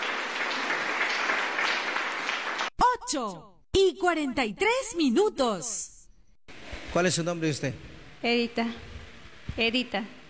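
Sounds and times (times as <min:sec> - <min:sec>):
audience applause: 0:00.0 - 0:02.7
speech: 0:03.1 - 0:05.9, 0:06.9 - 0:08.9, 0:09.6 - 0:10.2.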